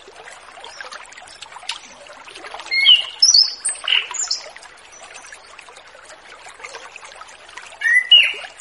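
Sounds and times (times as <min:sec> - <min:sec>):
orange-headed thrush song in relaxed open-flowing style: 0:02.7 - 0:04.4, 0:07.8 - 0:08.5.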